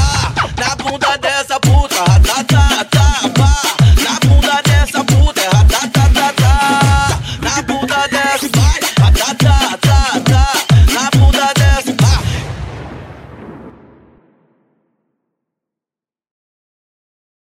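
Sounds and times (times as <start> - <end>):
electronic car audio music: 0.0 - 12.3.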